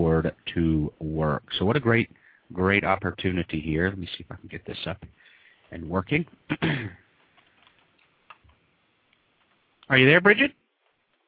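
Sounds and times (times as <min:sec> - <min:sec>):
speech: 0:00.0 - 0:07.0, 0:09.9 - 0:10.6
typing on a computer keyboard: 0:07.2 - 0:08.5.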